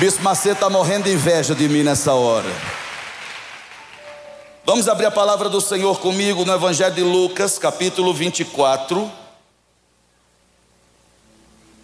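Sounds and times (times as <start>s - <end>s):
speech: 0.0s - 2.8s, 4.7s - 9.2s
audience applause for the keyboardist: 0.0s - 4.6s.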